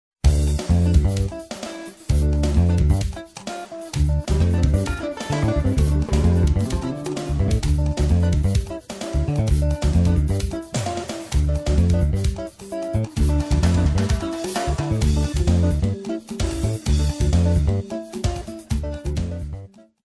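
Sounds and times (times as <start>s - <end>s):
jazz pop music: 0.3s - 19.6s.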